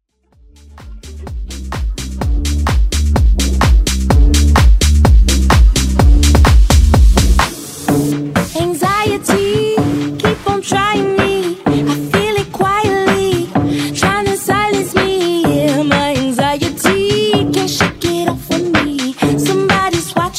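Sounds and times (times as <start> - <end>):
music mashup: 0.1 - 20.3.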